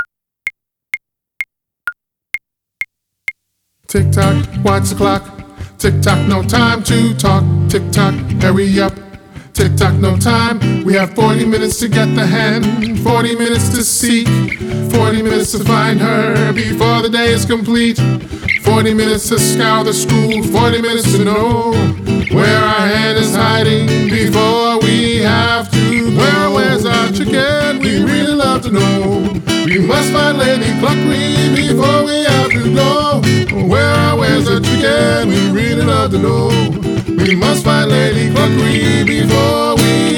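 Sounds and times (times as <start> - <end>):
person singing: 3.9 - 40.1.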